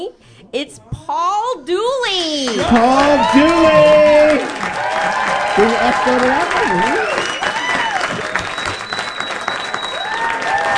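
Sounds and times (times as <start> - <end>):
speech: 0.0 - 7.1
studio audience clapping in an ovation: 2.4 - 10.7
sharp whistles from audience: 7.0 - 10.2.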